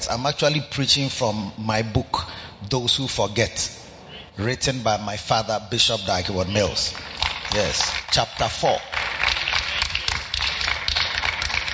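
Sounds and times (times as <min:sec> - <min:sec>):
speech: 0:00.0 - 0:03.8, 0:04.4 - 0:09.0
audience clapping: 0:06.2 - 0:11.7.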